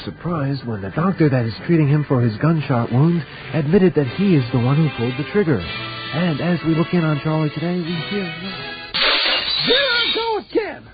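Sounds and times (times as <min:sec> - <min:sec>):
speech: 0:00.0 - 0:08.7, 0:09.6 - 0:10.9
glass bottle dropped and shattering: 0:09.0 - 0:09.9.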